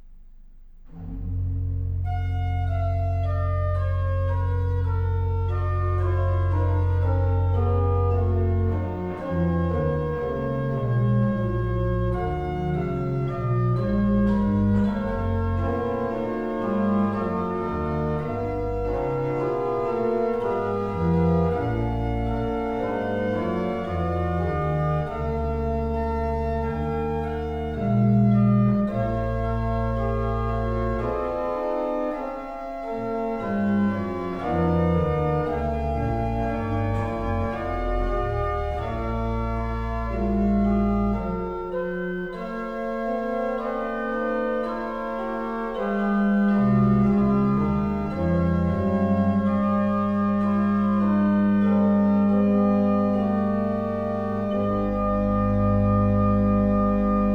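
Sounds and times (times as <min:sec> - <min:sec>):
organ music: 0:00.9 - 0:57.3.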